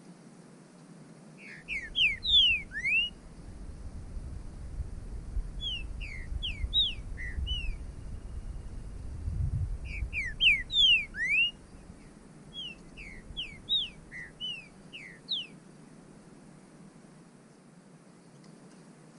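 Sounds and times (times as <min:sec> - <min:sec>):
bird song of downslurred whistles: 0:01.4 - 0:03.2, 0:05.6 - 0:09.0, 0:09.8 - 0:11.9, 0:12.5 - 0:15.6
low background rumble: 0:01.6 - 0:17.0.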